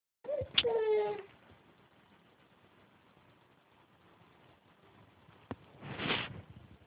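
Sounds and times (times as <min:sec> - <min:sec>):
hungry baby girl crying: 0:00.2 - 0:01.3.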